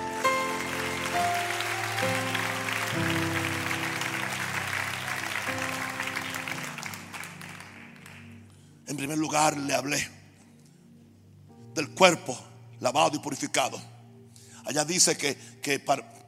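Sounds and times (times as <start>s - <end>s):
audience applauding loudly: 0.0s - 8.5s
speech: 9.0s - 10.2s, 11.8s - 13.9s, 14.7s - 16.2s.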